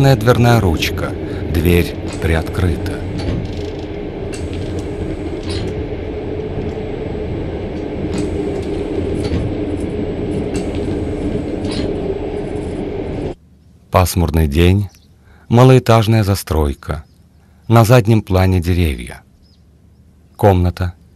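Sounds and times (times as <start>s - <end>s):
speech: 0.0s - 3.5s, 13.9s - 14.9s, 15.5s - 17.1s, 17.7s - 19.2s, 20.4s - 21.0s
moving train compartment carriage interior: 0.0s - 13.4s.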